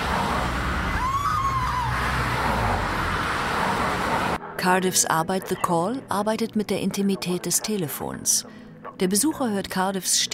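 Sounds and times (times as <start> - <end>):
city street traffic: 0.0 - 4.4
speech: 4.6 - 10.3.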